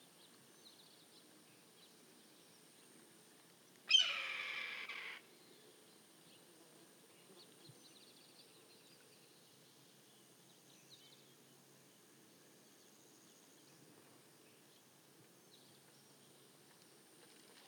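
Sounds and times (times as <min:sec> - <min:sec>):
red-tailed hawk giving hoarse raspy screams: 0:03.9 - 0:05.2.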